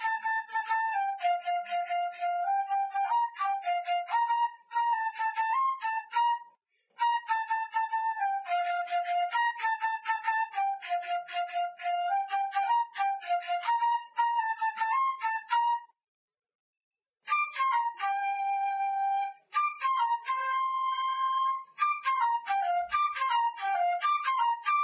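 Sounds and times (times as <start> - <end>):
flute melody: 0.0 - 16.0, 17.3 - 24.8.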